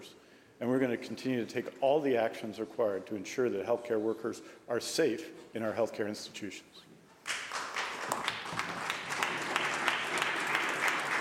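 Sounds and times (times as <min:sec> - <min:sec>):
speech: 0:00.0 - 0:06.9
applause in a legislative chamber: 0:07.2 - 0:11.1.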